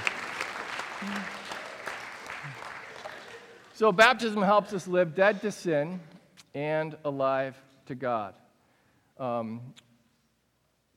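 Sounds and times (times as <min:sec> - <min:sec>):
audience applause: 0:00.0 - 0:03.8
speech: 0:03.8 - 0:08.4, 0:09.2 - 0:09.8.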